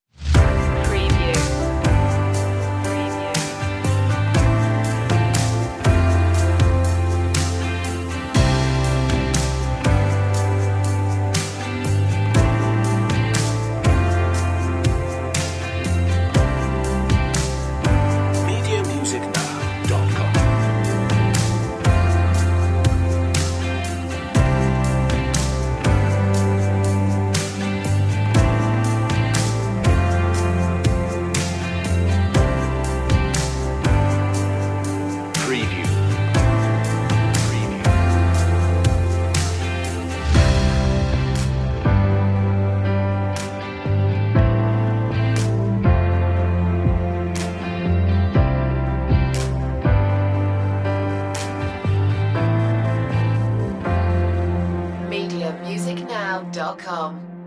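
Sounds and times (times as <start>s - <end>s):
pop ballad: 0.1s - 56.9s.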